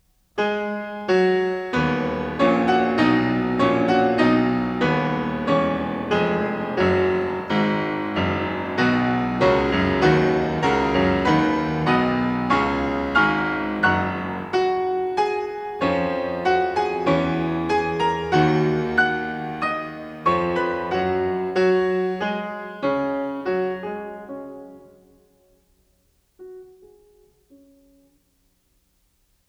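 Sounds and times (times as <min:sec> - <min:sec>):
piano piece: 0:00.0 - 0:28.3.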